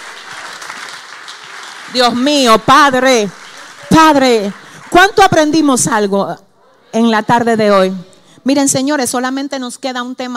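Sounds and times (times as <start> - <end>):
church audience applause: 0.0 - 5.8
speech: 1.9 - 10.3.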